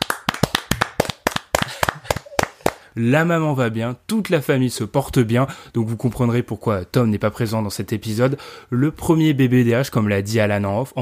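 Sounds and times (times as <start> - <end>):
applause from a small group: 0.0 - 2.9
speech: 3.0 - 10.9.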